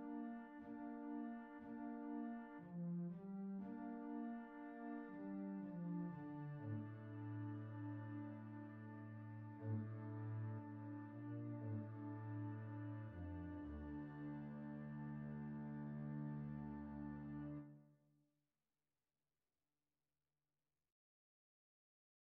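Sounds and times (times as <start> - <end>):
double basses playing a lament: 0.3 - 17.6.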